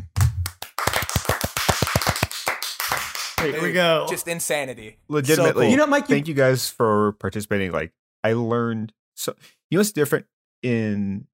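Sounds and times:
three people clapping: 0.0s - 4.0s
speech: 3.4s - 11.3s.

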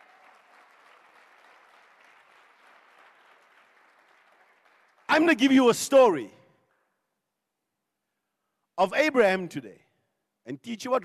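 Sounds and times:
audience clapping hands: 0.0s - 5.6s
speech: 5.2s - 6.4s, 8.8s - 9.8s, 10.4s - 11.0s.

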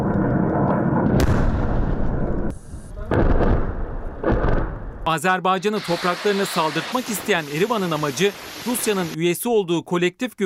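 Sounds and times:
artillery fire: 0.8s - 5.1s
speech: 5.1s - 10.4s.

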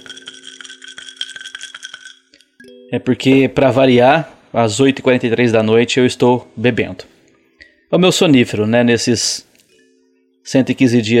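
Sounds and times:
ice cubes clinking in a glass: 0.0s - 2.7s
speech: 2.6s - 7.1s, 7.9s - 9.5s, 10.4s - 11.1s.

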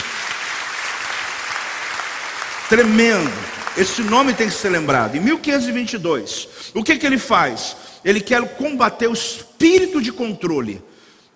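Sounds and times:
audience applause: 0.0s - 5.9s
speech: 2.7s - 11.3s.

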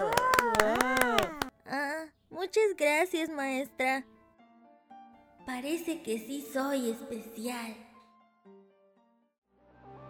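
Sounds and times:
applause for a classmate: 0.0s - 1.5s
speech: 2.5s - 4.2s, 5.5s - 7.8s.

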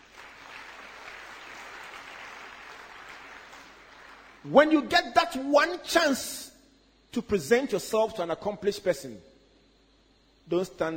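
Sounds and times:
audience applause as a CEO is introduced on stage: 0.0s - 4.5s
speech: 4.4s - 6.5s, 7.1s - 9.3s, 10.5s - 10.9s.

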